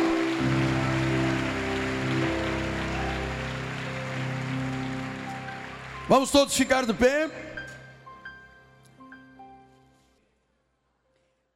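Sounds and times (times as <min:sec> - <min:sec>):
audience applause: 0:00.0 - 0:07.0
speech: 0:06.1 - 0:07.5.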